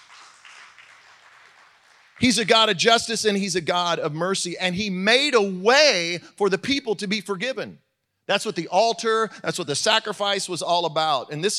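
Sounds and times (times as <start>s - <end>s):
few people clapping: 0.0s - 2.7s
speech: 2.2s - 11.5s.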